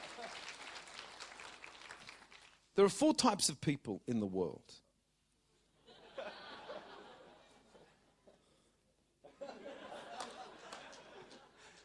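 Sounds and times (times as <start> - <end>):
audience applause: 0.0 - 2.6, 10.1 - 11.8
speech: 2.8 - 4.8
laughter: 5.8 - 8.1, 9.2 - 11.8.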